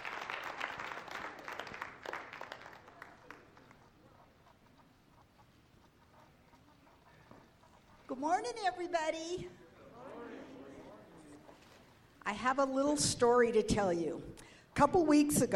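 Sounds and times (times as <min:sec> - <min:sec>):
church congregation clapping to welcome a speaker: 0:00.0 - 0:03.8
speech: 0:08.1 - 0:09.6, 0:12.3 - 0:15.5.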